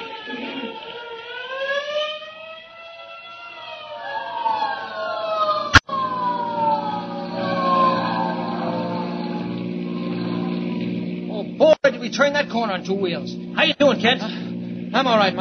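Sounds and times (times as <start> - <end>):
hook and ladder fire truck siren: 0.0 - 11.5
droning fire truck engine rumble: 6.0 - 15.3
speech: 12.1 - 15.3.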